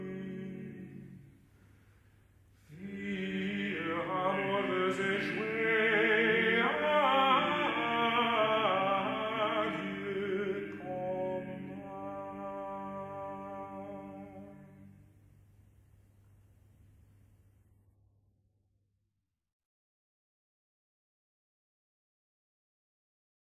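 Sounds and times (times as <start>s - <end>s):
polyphonic chanson: 0.0s - 1.5s, 2.6s - 15.0s.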